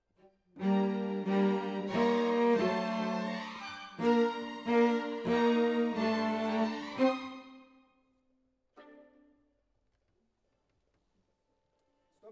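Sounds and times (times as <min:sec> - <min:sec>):
cello solo: 0:00.0 - 0:07.7.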